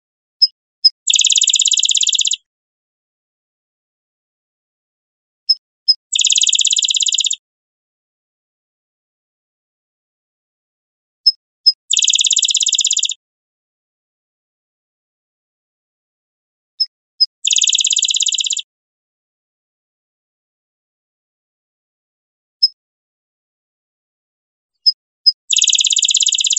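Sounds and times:
Rufous-winged sparrow rapid dry trill: 1.1s - 2.4s, 6.2s - 7.4s, 11.9s - 13.2s, 17.5s - 18.6s, 25.5s - 26.5s.

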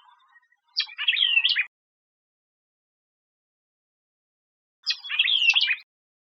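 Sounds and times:
White-eyed vireo song: 0.0s - 1.8s, 4.8s - 5.9s.

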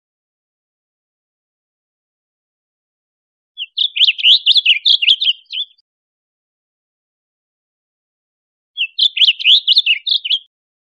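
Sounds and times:
blue grosbeak song: 3.6s - 5.8s, 8.8s - 10.4s.

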